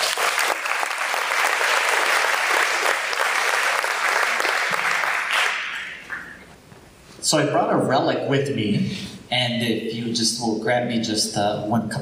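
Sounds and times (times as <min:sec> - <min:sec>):
audience applause welcoming a speaker: 0:00.0 - 0:06.3
speech: 0:07.3 - 0:12.0.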